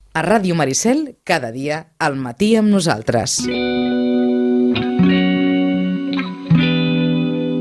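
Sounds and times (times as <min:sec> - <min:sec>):
speech: 0:00.2 - 0:04.3
distorted electric tones with chorus effects in a film theme song: 0:03.4 - 0:07.5.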